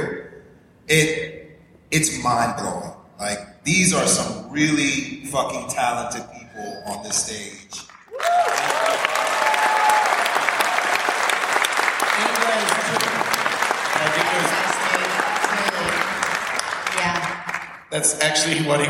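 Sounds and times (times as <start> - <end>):
speech: 0.9 - 7.9, 17.9 - 18.8
audience clapping: 7.8 - 18.1.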